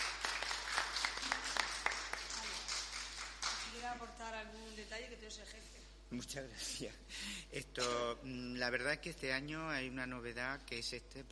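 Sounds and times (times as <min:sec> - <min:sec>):
audience clapping: 0:00.0 - 0:04.0
speech: 0:03.9 - 0:11.3.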